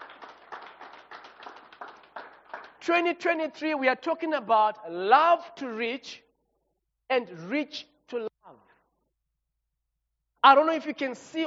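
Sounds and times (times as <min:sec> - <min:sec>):
rhythmic audience clapping: 0:00.0 - 0:03.1
speech: 0:02.8 - 0:06.2, 0:07.1 - 0:08.3, 0:10.4 - 0:11.4.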